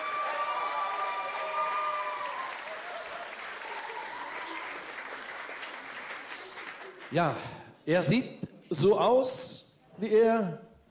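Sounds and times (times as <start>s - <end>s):
audience applause: 0.0s - 7.6s
speech: 7.1s - 10.7s.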